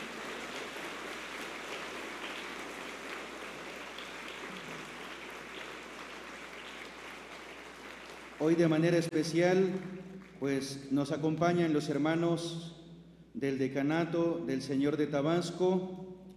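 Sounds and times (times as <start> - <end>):
audience applause: 0.0 - 10.4
speech: 8.4 - 12.8, 13.4 - 16.0.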